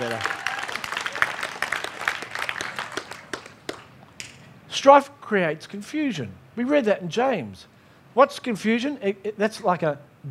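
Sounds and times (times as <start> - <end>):
audience applauding: 0.0 - 4.1
speech: 4.8 - 10.2.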